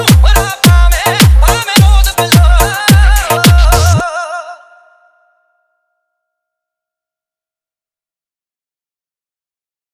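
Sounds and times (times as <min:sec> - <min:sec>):
Punjabi remix music: 0:00.0 - 0:04.3.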